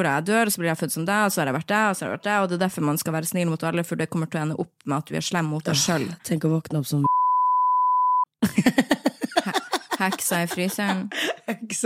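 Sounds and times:
speech: 0.0 - 7.2, 8.5 - 8.9, 10.0 - 11.8
censor bleep covering a name: 7.0 - 8.3
laughter: 8.4 - 11.8.

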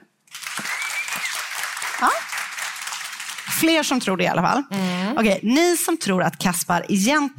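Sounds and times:
crowd clapping: 0.3 - 4.1
speech: 2.0 - 2.3, 3.6 - 7.3.

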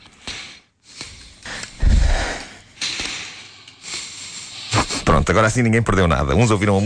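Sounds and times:
people breathing into microphones: 0.0 - 5.1
speech: 5.2 - 6.8.

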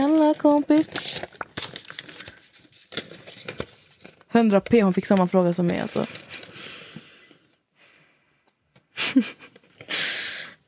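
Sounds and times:
envelope paper rustling and crinkling as it is drawn and handled: 0.0 - 6.9
speech: 0.4 - 1.4, 4.4 - 6.3, 9.2 - 9.4.

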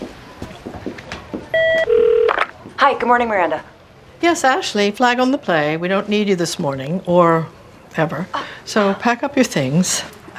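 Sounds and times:
telephone ringing with two electronic tones: 1.6 - 2.4
speech: 2.8 - 10.2.

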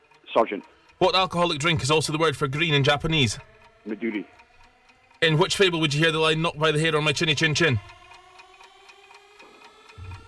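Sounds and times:
countdown timer ticking: 0.0 - 10.2
faint sustained electronic hum: 0.2 - 8.2
speech: 0.4 - 4.4, 5.2 - 8.0.

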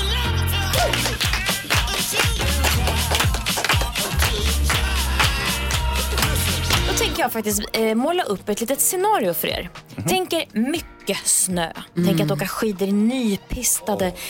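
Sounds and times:
people clapping along in studio: 0.0 - 7.0
loud upbeat music: 0.0 - 14.2
speech: 7.3 - 14.2.

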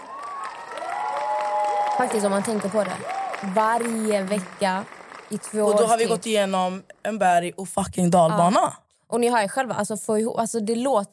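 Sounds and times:
crowd clapping and cheering: 0.0 - 6.5
speech: 2.0 - 11.1.

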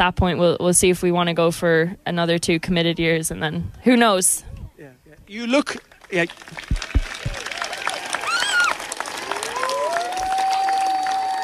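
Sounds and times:
speech: 0.0 - 6.9
audience applause: 5.4 - 11.4.

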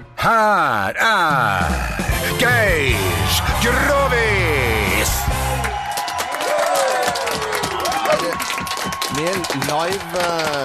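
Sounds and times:
speech: 0.2 - 4.3, 9.2 - 10.6
live audience clapping: 3.0 - 10.6
audience whoops and shouts: 5.1 - 9.4.

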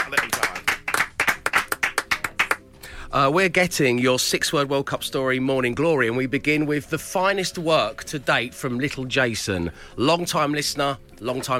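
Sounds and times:
round of applause: 0.0 - 2.6
speech: 3.1 - 11.5.

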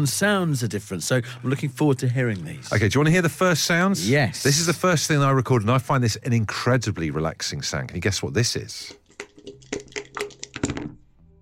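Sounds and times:
speech: 0.0 - 9.0
dice rolling in a board game: 9.0 - 11.0.

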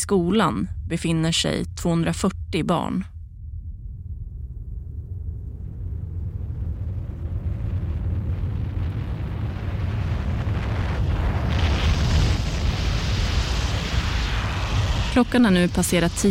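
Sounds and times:
speech: 0.1 - 3.1, 15.2 - 16.2
deep continuous roaring rumble of an approaching mudslide: 4.5 - 16.2.

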